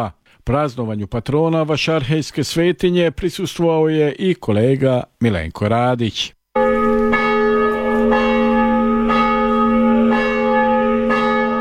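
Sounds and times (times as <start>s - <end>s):
speech: 0.0s - 6.7s
church bell tolling: 6.6s - 11.6s.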